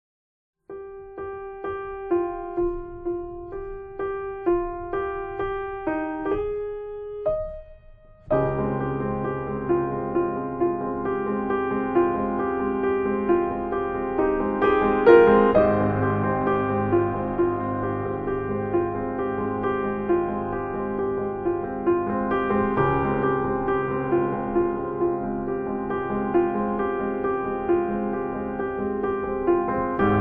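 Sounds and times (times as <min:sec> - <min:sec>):
piano cover: 0:00.7 - 0:30.2.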